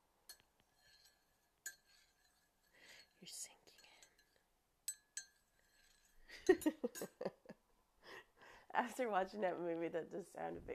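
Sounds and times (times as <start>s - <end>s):
teaspoon stirring tea in a cup: 0.3s - 7.2s
speech: 3.2s - 3.6s, 6.5s - 7.4s, 8.8s - 10.7s.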